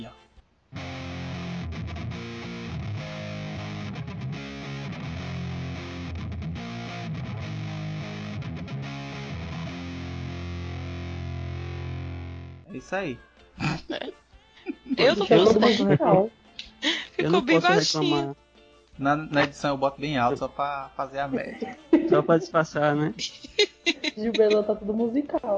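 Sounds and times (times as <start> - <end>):
electric guitar played loud through amplifier: 0.8 - 12.6
speech: 12.7 - 14.2, 14.9 - 16.4, 17.2 - 18.4, 19.0 - 23.6, 24.2 - 25.5
laughter: 14.6 - 18.3, 21.2 - 24.9.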